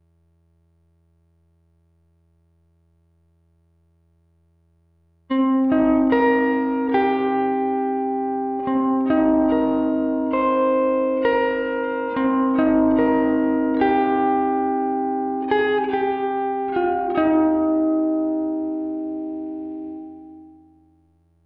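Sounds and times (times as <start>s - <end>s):
guitar texture: 5.3s - 20.8s.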